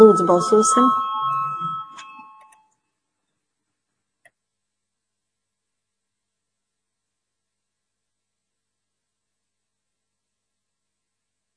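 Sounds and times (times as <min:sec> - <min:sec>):
speech: 0:00.0 - 0:01.0
bell rung in parliament to call a vote: 0:00.0 - 0:02.7.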